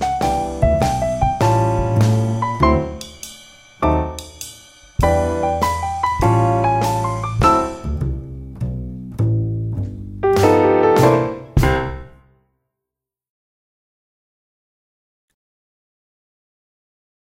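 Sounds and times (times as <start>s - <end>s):
rhythmic tapping: 0.0s - 8.3s, 9.1s - 12.1s.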